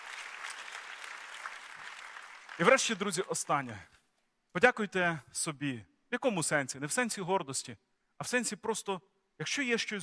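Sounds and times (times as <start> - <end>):
church audience clapping: 0.0 - 3.8
speech: 2.6 - 10.0.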